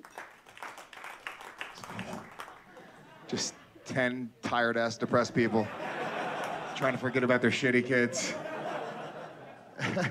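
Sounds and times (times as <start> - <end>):
scattered clapping from a crowd at a live comedy show: 0.0 - 2.7
laughter: 1.9 - 3.7, 5.3 - 10.0
speech: 3.3 - 5.8, 6.8 - 8.4.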